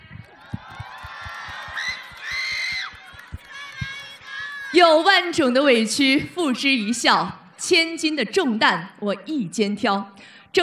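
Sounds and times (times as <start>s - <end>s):
audience applause: 0.0s - 4.8s
speech: 4.7s - 10.6s.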